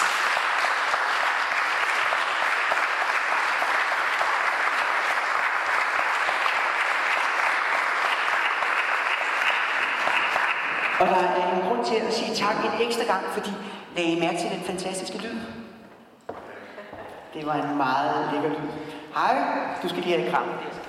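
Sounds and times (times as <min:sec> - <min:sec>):
audience applause for two musicians: 0:00.0 - 0:11.1
speech: 0:11.0 - 0:15.6, 0:17.4 - 0:20.8.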